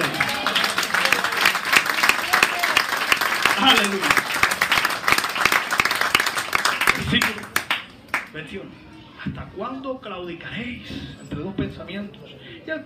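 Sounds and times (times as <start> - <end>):
audience applause: 0.0 - 8.3
speech: 3.7 - 4.2, 8.5 - 12.8.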